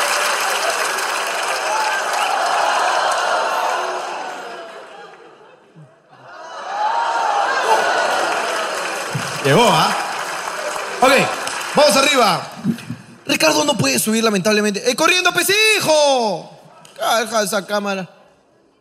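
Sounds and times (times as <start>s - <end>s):
audience cheering: 0.0s - 5.3s, 6.2s - 12.6s
audience applause: 0.0s - 5.4s, 6.7s - 13.6s
speech: 9.5s - 10.0s, 11.1s - 18.2s.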